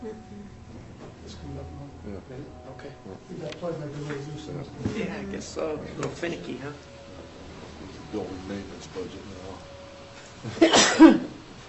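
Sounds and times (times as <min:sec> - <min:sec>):
speech: 0:01.6 - 0:07.0, 0:08.1 - 0:09.8, 0:10.4 - 0:11.3
person sneezing: 0:10.6 - 0:11.3.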